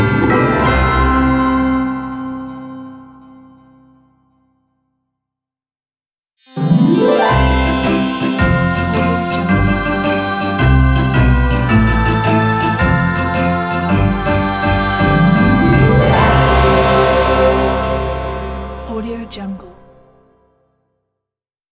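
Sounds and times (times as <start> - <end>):
Christmas ident jingles: 0.0 - 2.9, 6.4 - 20.0.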